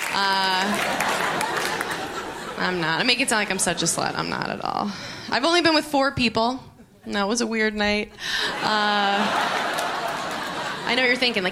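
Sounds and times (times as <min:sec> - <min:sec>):
audience clapping: 0:00.0 - 0:02.6, 0:09.3 - 0:11.4
laughter: 0:00.1 - 0:04.5, 0:08.3 - 0:11.4
speech: 0:00.2 - 0:00.9, 0:02.6 - 0:09.6, 0:10.9 - 0:11.4.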